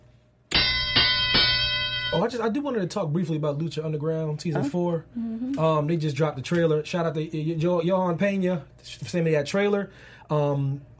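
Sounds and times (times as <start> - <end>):
bell being struck: 0.5 - 2.4
speech: 2.1 - 10.9.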